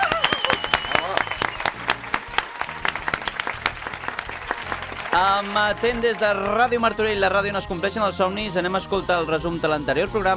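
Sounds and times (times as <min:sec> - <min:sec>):
audience applause: 0:00.0 - 0:06.8
speech: 0:05.2 - 0:10.3.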